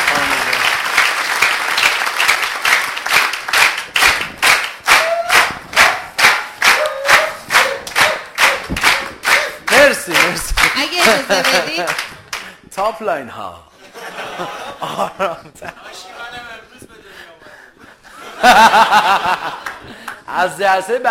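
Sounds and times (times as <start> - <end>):
audience applauding: 0.0 - 12.6, 18.5 - 20.3
voices cheering faintly: 4.9 - 11.8
laughter: 9.4 - 12.2, 13.8 - 20.1
speech: 11.3 - 12.1, 12.8 - 13.7, 14.4 - 16.1, 18.4 - 19.6, 20.3 - 21.0.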